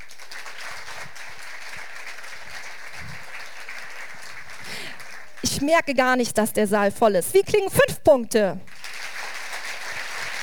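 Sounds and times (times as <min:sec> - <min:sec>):
audience applause: 0:00.0 - 0:05.6, 0:08.7 - 0:10.4
speech: 0:05.4 - 0:08.7.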